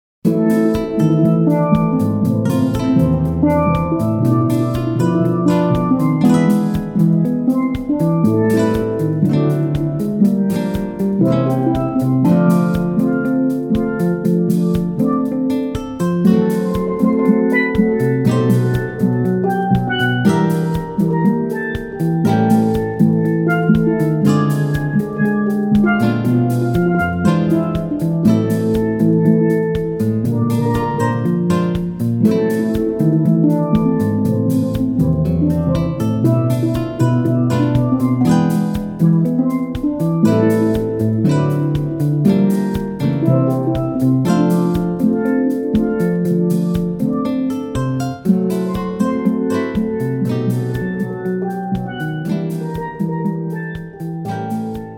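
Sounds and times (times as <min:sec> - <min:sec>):
steel drum band: 0:00.2 - 0:54.9.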